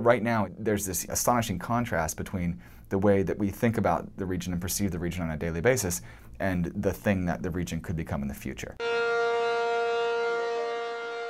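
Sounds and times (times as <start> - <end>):
speech: 0.0 - 9.5
emergency siren wailing at an oil refinery during a fire: 8.8 - 11.2.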